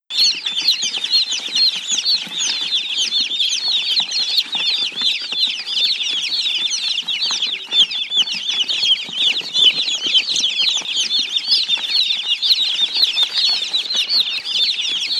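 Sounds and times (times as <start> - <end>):
chicks peeping: 0.1 - 15.1.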